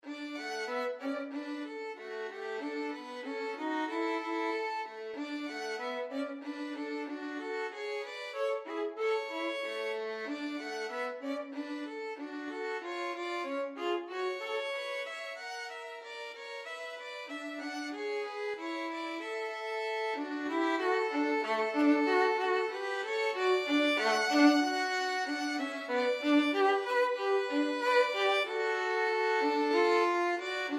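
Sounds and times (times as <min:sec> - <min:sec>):
violin duet: 0:00.0 - 0:30.7.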